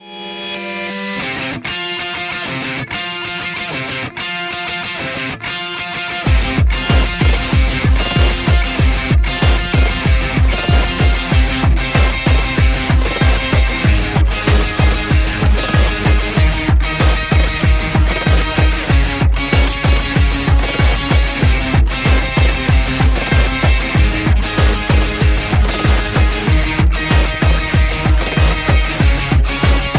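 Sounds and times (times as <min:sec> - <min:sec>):
ringtone: 0:00.0 - 0:01.4, 0:06.3 - 0:29.9.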